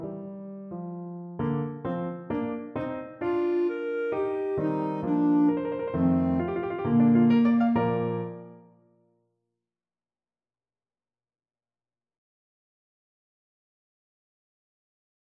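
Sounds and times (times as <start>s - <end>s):
clarinet melody: 1.4s - 8.7s.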